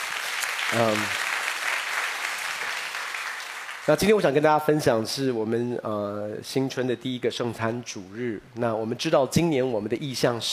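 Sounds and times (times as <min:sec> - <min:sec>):
audience applause: 0:00.0 - 0:04.3
speech: 0:00.7 - 0:01.2, 0:03.9 - 0:10.5.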